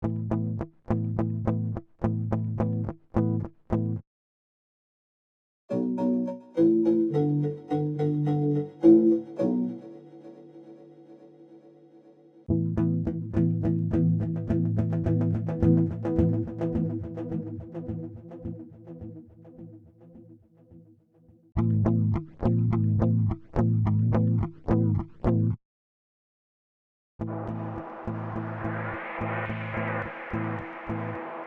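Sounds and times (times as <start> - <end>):
guitar: 0.0 - 4.0, 5.7 - 10.7, 12.5 - 20.3, 21.6 - 25.6, 27.2 - 31.4.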